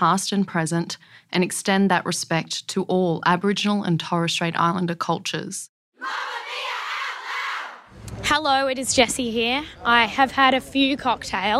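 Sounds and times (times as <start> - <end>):
speech: 0.0 - 6.4, 8.1 - 11.5
street background noise of New York: 7.9 - 11.5.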